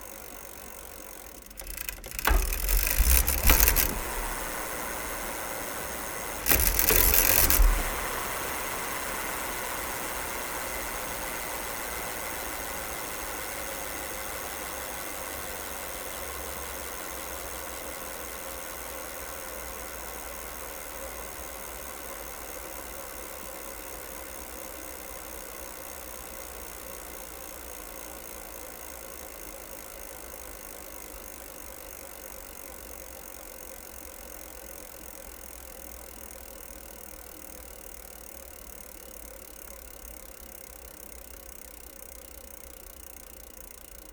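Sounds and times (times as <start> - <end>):
bicycle pedal: 0.0 - 26.7, 27.3 - 44.1.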